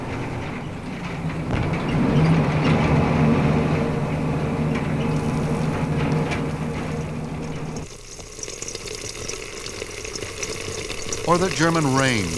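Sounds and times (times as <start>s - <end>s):
riding in back of army truck: 0.0s - 7.9s, 11.2s - 12.3s
speech: 11.3s - 12.3s.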